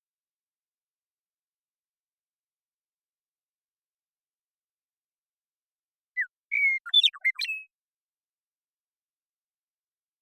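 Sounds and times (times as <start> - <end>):
Western meadowlark song: 6.2 - 7.8.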